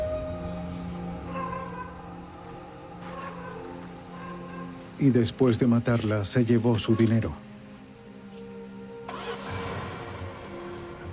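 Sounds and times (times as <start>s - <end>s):
speech: 5.0s - 7.5s
car engine starting: 9.1s - 11.1s.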